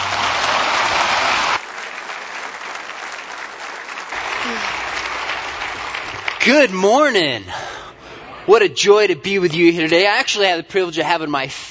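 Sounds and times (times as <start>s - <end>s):
audience applause welcoming speaker: 0.0s - 6.7s
speech: 6.5s - 7.6s, 8.5s - 11.7s.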